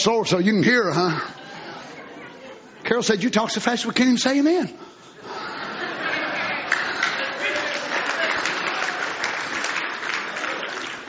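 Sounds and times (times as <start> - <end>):
speech: 0.0 - 1.4, 2.9 - 5.0
laughter: 5.2 - 9.0
audience hand clap: 6.6 - 11.0.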